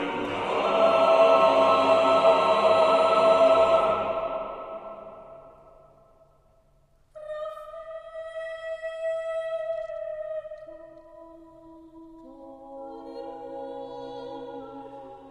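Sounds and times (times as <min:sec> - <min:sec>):
a cappella choir of sixteen soprano alto tenor and bass voices: 0:00.0 - 0:05.8, 0:12.3 - 0:15.3.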